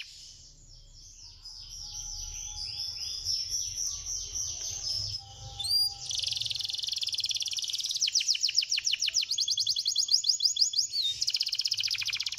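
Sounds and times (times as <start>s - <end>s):
bird song: 0.0s - 12.3s.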